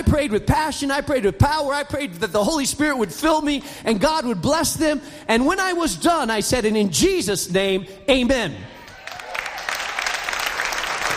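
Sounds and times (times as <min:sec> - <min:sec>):
speech: 0:00.0 - 0:08.8
church audience applause after a prayer: 0:08.8 - 0:11.1.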